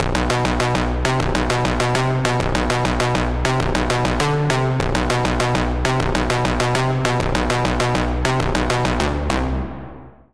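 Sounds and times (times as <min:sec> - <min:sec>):
Sylenth1 synth pluck: 0:00.0 - 0:10.0.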